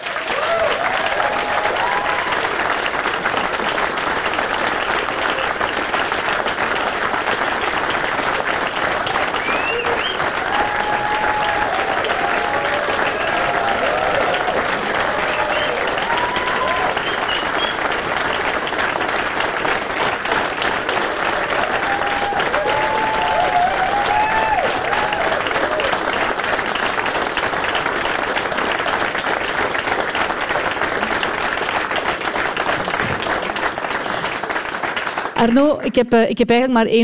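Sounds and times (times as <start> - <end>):
audience cheers: 0.0 - 3.6, 9.1 - 18.2, 20.8 - 27.0
audience applause: 0.0 - 35.8
audience whistles: 9.4 - 10.3, 16.9 - 17.9
speech: 35.6 - 37.0.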